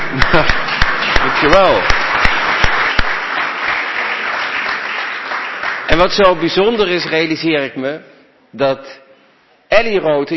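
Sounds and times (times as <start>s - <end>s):
audience applause: 0.0s - 6.7s
speech: 0.2s - 0.6s, 1.4s - 2.0s, 6.0s - 9.0s, 9.7s - 10.3s.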